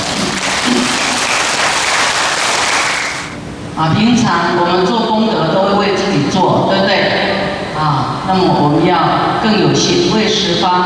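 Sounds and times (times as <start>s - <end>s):
crowd clapping: 0.0s - 3.4s
speech: 3.8s - 7.2s, 7.8s - 10.8s.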